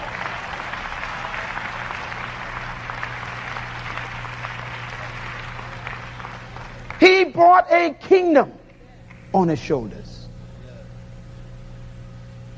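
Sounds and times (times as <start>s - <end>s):
people clapping hands: 0.0s - 7.9s, 8.6s - 9.4s
speech: 7.4s - 8.6s, 9.3s - 10.2s.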